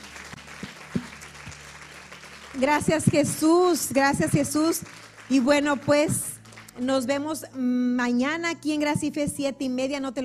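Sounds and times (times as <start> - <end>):
applause: 0.0 - 7.0
speech: 2.6 - 10.2.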